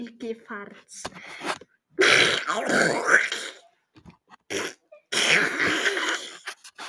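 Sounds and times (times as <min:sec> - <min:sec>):
milky farts: 0:02.0 - 0:03.7, 0:04.3 - 0:06.8.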